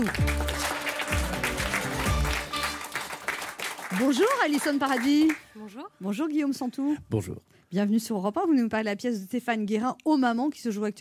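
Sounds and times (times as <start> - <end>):
studio audience applause: 0.0 - 5.6
speech: 4.0 - 10.9.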